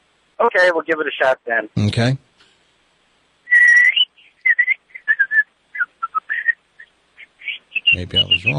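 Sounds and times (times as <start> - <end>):
speech: 0.5 - 2.2, 8.0 - 8.5
person whistling a tune over a phone line: 3.5 - 5.4.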